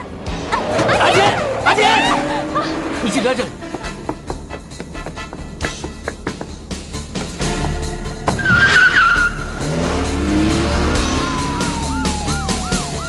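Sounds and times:
car engine roaring: 0.0s - 5.0s, 5.9s - 13.0s
tyres skidding: 0.0s - 13.0s
speech: 3.0s - 3.6s
siren-like wail: 10.9s - 13.0s.

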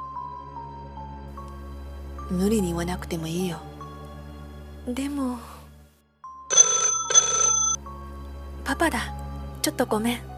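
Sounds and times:
speech: 2.3s - 3.7s, 4.8s - 5.6s, 8.7s - 10.3s
telephone ringing with an incoming call: 6.5s - 7.8s.

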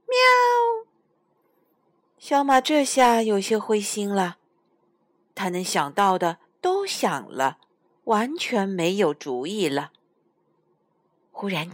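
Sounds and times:
kitten meowing: 0.0s - 0.8s
speech: 2.2s - 4.4s, 5.4s - 10.0s, 11.4s - 11.7s.

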